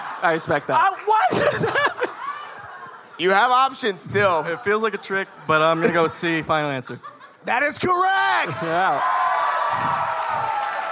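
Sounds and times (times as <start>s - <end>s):
laughter: 0.0s - 3.5s, 4.2s - 9.0s
speech: 0.2s - 2.0s, 3.2s - 10.1s
audience clapping: 8.8s - 10.9s.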